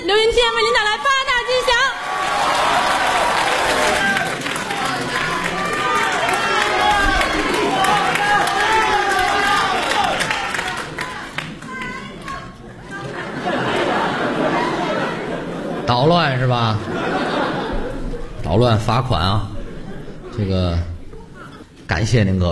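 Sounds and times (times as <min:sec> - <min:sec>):
speech: 0:00.3 - 0:01.2, 0:15.9 - 0:16.9, 0:18.5 - 0:19.5, 0:20.4 - 0:20.9, 0:21.9 - 0:22.5
audience applause at a comedy show: 0:01.4 - 0:15.8
voices chattering: 0:04.0 - 0:22.2
laughter: 0:12.1 - 0:21.8.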